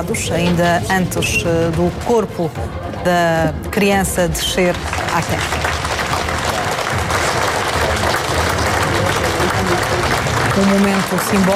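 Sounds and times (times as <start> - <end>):
speech: 0.0 - 5.8, 10.6 - 11.5
mourners applauding at a funeral: 4.6 - 11.5.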